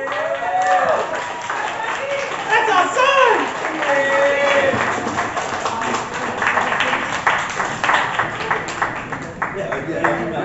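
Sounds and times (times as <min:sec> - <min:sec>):
voices whooping and shouting: 0:00.0 - 0:04.8
audience applause: 0:00.0 - 0:10.4.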